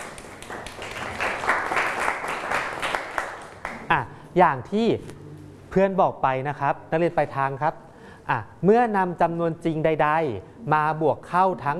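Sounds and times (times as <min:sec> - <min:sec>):
students applauding a classmate: 0:00.0 - 0:03.9
speech: 0:03.9 - 0:11.7.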